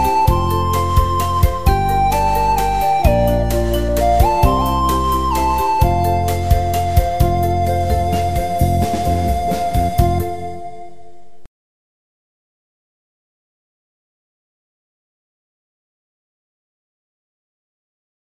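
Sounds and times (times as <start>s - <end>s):
instrumental music beat: 0.0s - 10.9s.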